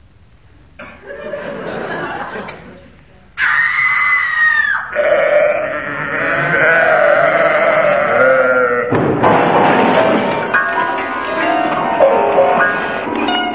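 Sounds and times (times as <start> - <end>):
laughter: 0.8 - 3.0, 9.2 - 13.4
woman screaming tripping over a sheep: 3.4 - 8.9
sacrificial sheep bleating: 4.9 - 9.0.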